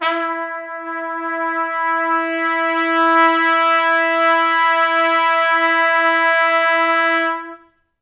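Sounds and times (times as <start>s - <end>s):
pop brass section: 0.0s - 7.7s.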